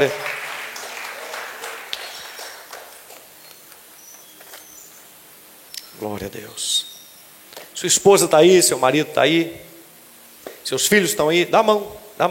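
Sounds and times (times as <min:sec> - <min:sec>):
speech: 0:00.0 - 0:00.3, 0:06.0 - 0:06.9, 0:07.8 - 0:09.7, 0:10.7 - 0:12.2
audience applauding: 0:00.0 - 0:03.7.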